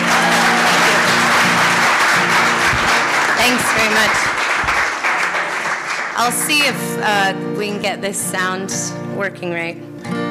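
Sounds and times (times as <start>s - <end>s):
audience applause: 0.0s - 6.6s
speech: 3.5s - 4.3s, 6.2s - 10.2s.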